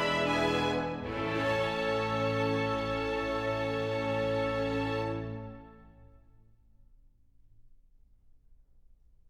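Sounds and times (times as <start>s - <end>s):
orchestra playing a suite prelude: 0.0s - 6.0s.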